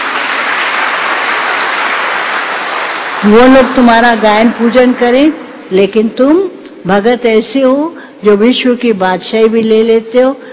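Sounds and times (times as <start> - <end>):
audience clapping: 0.0 - 5.5
speech: 3.2 - 10.5.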